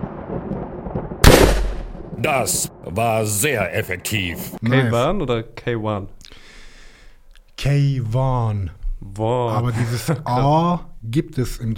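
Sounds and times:
electric thunder shock sound effect: 0:00.0 - 0:04.0
speech: 0:02.2 - 0:06.5, 0:07.6 - 0:11.7
laughter: 0:09.5 - 0:10.4.

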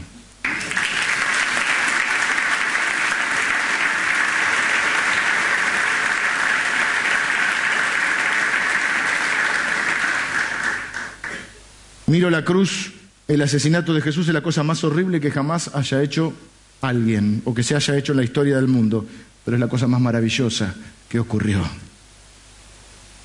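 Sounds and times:
audience applause: 0:00.4 - 0:11.5
speech: 0:12.1 - 0:21.8.

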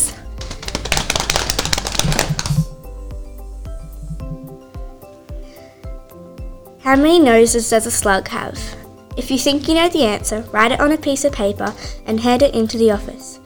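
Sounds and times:
drum roll: 0:00.4 - 0:02.9
speech: 0:06.9 - 0:13.4.

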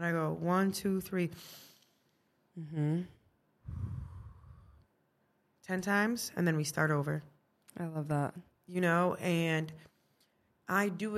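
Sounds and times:
speech: 0:00.0 - 0:01.7, 0:02.6 - 0:04.0, 0:05.7 - 0:09.9, 0:10.7 - 0:11.1
person giving a short voiced sigh during a calming breathing exercise: 0:02.6 - 0:04.8
long breathy exhale during a calming breathing exercise with a child: 0:03.6 - 0:04.8.

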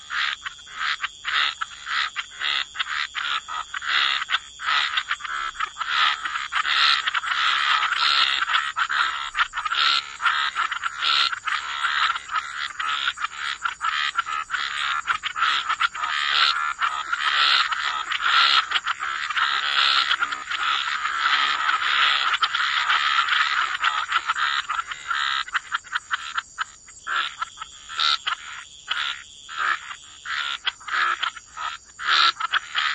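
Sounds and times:
dense frog chorus of raspy croaks: 0:00.0 - 0:32.9.

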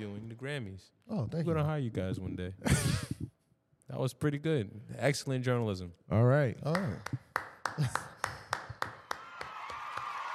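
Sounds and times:
speech: 0:00.0 - 0:03.2, 0:03.9 - 0:08.1
hand clap: 0:06.7 - 0:10.3.

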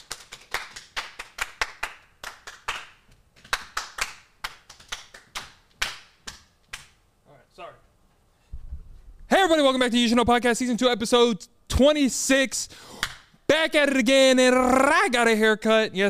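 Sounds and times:
small group clapping: 0:00.0 - 0:07.0, 0:13.0 - 0:13.3
speech: 0:09.4 - 0:12.9, 0:13.6 - 0:16.0.

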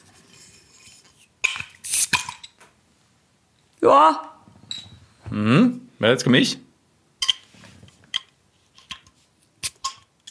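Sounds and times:
beer bottle being opened with slight hiss: 0:01.4 - 0:02.6, 0:09.6 - 0:10.2
speech: 0:03.8 - 0:04.3, 0:05.3 - 0:06.6.

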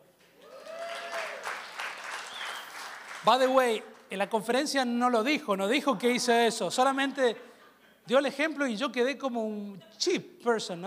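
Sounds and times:
audience applause: 0:00.4 - 0:03.6
speech: 0:03.2 - 0:10.8.

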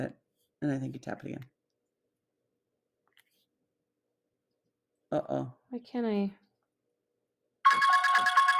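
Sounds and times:
speech: 0:00.0 - 0:01.6, 0:05.1 - 0:06.4
phone alarm tone ringing: 0:07.6 - 0:08.5.

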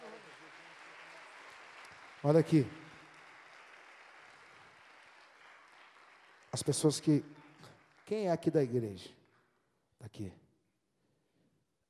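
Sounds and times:
audience applause: 0:00.0 - 0:08.9
speech: 0:02.2 - 0:02.8, 0:06.6 - 0:07.4, 0:08.1 - 0:09.2, 0:10.0 - 0:10.4.

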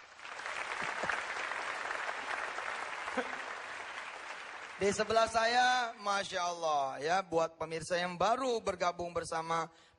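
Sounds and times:
audience applause: 0:00.0 - 0:05.8
speech: 0:03.2 - 0:03.4, 0:04.8 - 0:09.9.

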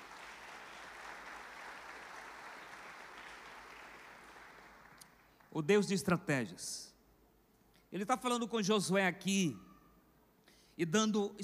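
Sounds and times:
large crowd applauding: 0:00.0 - 0:05.5
speech: 0:05.5 - 0:06.9, 0:07.9 - 0:09.7, 0:10.8 - 0:11.4.

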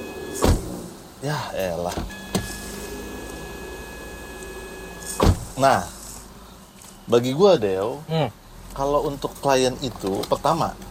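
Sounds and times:
speech: 0:01.2 - 0:02.2, 0:05.6 - 0:06.0, 0:07.1 - 0:10.8
door: 0:05.2 - 0:05.5.

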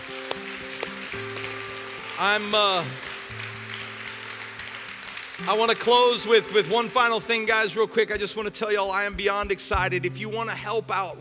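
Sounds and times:
audience applause: 0:00.0 - 0:07.8
speech: 0:02.2 - 0:03.1, 0:05.4 - 0:11.1.

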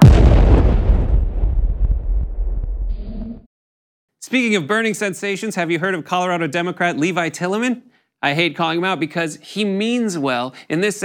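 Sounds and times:
bomb explosion: 0:00.0 - 0:03.0
speech: 0:04.2 - 0:11.0.

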